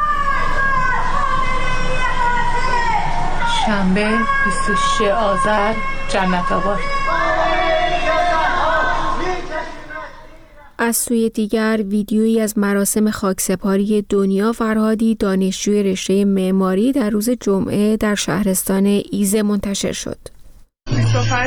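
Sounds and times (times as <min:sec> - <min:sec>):
crowd chanting anti-government slogans: 0:00.0 - 0:10.8
speech: 0:03.7 - 0:07.0, 0:10.8 - 0:21.4.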